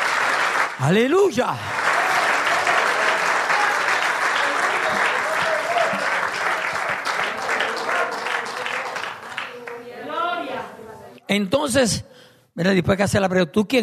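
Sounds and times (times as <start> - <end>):
audience applauding: 0.0 - 10.2
speech: 0.8 - 1.8, 11.3 - 13.8.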